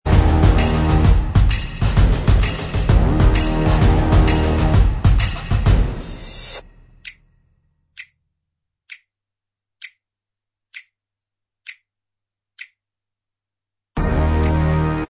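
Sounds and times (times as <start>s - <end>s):
instrumental backing track: 0.1s - 6.6s, 14.0s - 15.0s.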